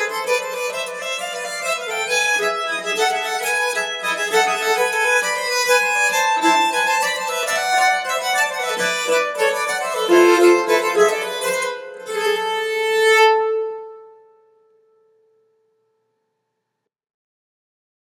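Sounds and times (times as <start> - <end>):
nyckelharpa playing Balkan polska: 0.0 - 14.3.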